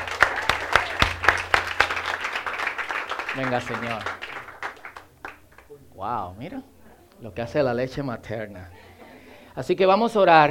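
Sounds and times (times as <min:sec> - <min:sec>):
audience applause: 0:00.0 - 0:05.7
speech: 0:03.4 - 0:04.2, 0:06.0 - 0:08.8, 0:09.6 - 0:10.4.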